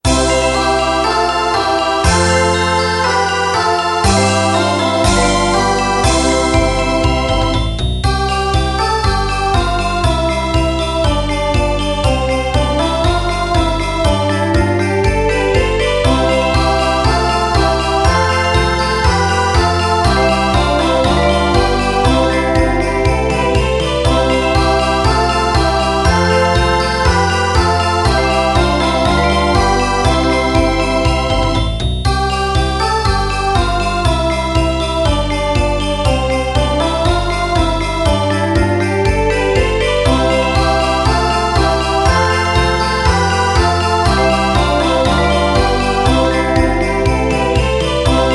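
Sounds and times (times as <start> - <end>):
school music backing track: 0.0 - 48.3.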